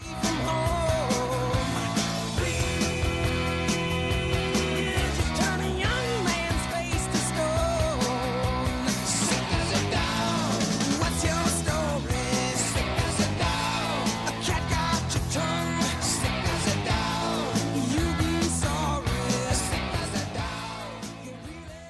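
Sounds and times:
rock song: 0.0s - 21.8s.

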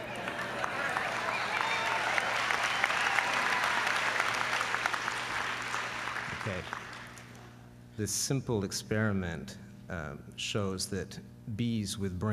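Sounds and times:
audience applause: 0.0s - 7.3s
speech: 6.5s - 6.8s, 8.0s - 12.3s.

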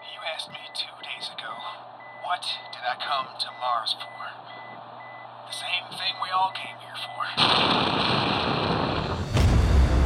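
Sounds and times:
speech: 0.3s - 0.9s, 2.3s - 4.8s, 5.5s - 8.7s
thermonuclear array detonating at the South Pole of Mars: 7.4s - 10.0s.

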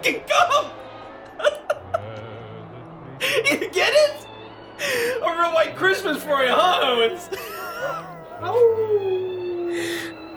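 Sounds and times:
speech: 0.0s - 0.8s, 3.5s - 4.2s, 4.8s - 10.0s
laughter: 1.3s - 2.5s, 5.8s - 10.3s
pack of wolves howling: 5.3s - 10.3s.

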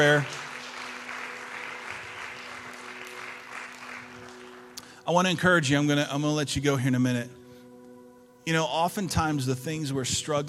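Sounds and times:
speech: 0.0s - 0.4s, 5.1s - 7.4s, 8.4s - 10.4s
church audience applause: 0.0s - 4.8s.

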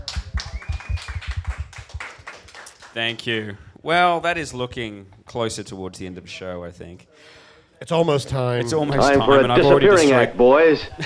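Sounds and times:
audience round of applause: 0.0s - 3.1s
faint whistle: 0.4s - 1.6s
speech: 3.0s - 11.0s.

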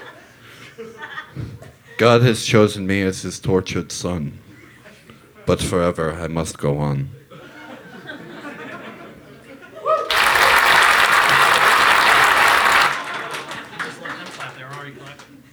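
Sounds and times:
laughter: 0.0s - 2.2s, 4.4s - 6.1s, 7.2s - 15.5s
speech: 0.8s - 1.4s, 2.0s - 4.5s, 5.5s - 7.2s
audience applause: 9.9s - 15.5s.

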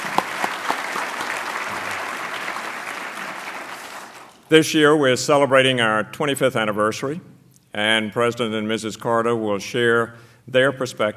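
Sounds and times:
crowd applauding: 0.0s - 4.5s
speech: 4.5s - 11.1s.

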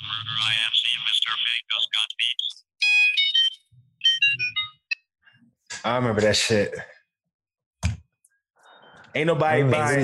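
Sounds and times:
speech: 0.3s - 2.6s, 5.8s - 6.9s, 9.2s - 10.0s
phone ringtone melody played from a handset: 2.8s - 5.0s.

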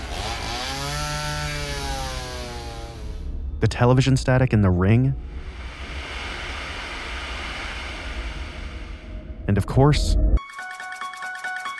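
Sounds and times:
chainsaw engine roaring: 0.0s - 3.3s, 5.3s - 9.1s
speech: 3.6s - 5.4s, 9.8s - 10.3s.

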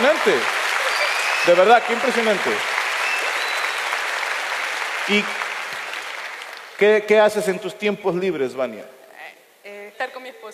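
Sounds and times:
audience applause: 0.0s - 7.4s
speech: 0.2s - 0.6s, 1.4s - 2.7s, 5.1s - 5.4s, 6.8s - 9.0s, 10.0s - 10.5s.

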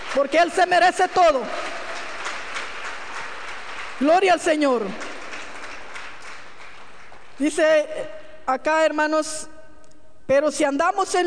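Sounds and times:
audience applauding: 0.0s - 7.4s
speech: 0.1s - 1.6s, 4.0s - 5.0s, 7.4s - 9.6s, 10.3s - 11.2s.

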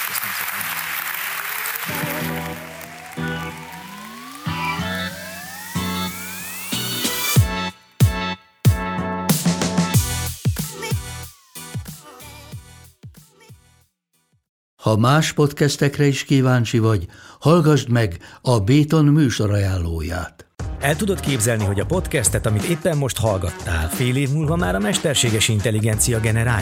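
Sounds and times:
audience applause after a live onstage conversation: 0.0s - 5.7s
rising electronic sweeps: 1.8s - 8.2s
loud punchy music hits: 2.1s - 13.3s
speech: 14.9s - 26.6s.

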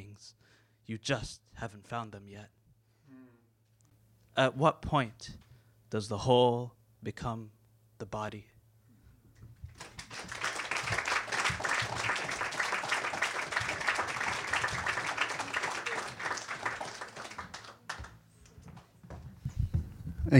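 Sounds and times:
speech: 0.2s - 2.6s, 4.4s - 8.5s
audience applause: 9.7s - 18.2s.

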